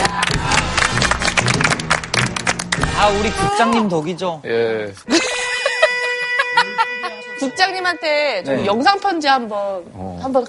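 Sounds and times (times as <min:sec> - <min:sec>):
people clapping: 0:00.0 - 0:03.3
speech: 0:03.0 - 0:05.3, 0:07.4 - 0:10.4
laughter: 0:05.1 - 0:07.4.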